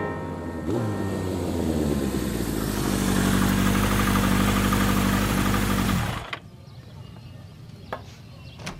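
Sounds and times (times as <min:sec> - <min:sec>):
car engine idling after driving around the block: 0:00.2 - 0:06.4.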